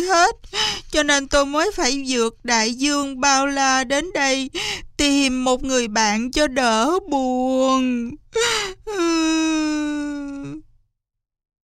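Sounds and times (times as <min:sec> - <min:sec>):
speech: 0:00.0 - 0:09.8
person performing theatrical weeping: 0:08.0 - 0:10.6.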